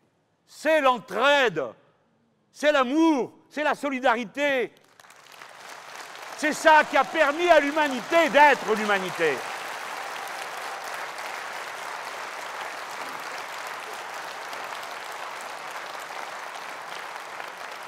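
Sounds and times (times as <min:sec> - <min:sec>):
speech: 0:00.6 - 0:01.8, 0:02.6 - 0:04.8, 0:06.4 - 0:09.5
audience applauding warmly: 0:04.8 - 0:17.8.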